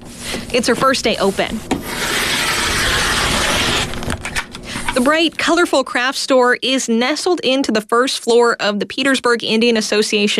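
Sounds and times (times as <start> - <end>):
speech: 0.5 - 1.8, 5.0 - 10.3
dark blue floral fabric being cut in a craft store: 1.2 - 4.2.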